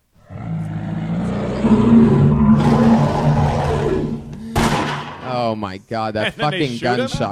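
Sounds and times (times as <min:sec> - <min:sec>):
angry bear roar sound effect: 0:00.2 - 0:04.5
speech: 0:01.6 - 0:02.9, 0:05.5 - 0:07.2.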